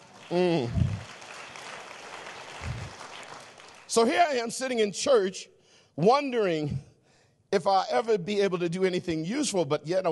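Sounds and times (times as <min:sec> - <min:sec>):
audience hand clapping: 0:00.0 - 0:04.1
speech: 0:00.3 - 0:00.9, 0:03.9 - 0:06.9, 0:07.5 - 0:10.1.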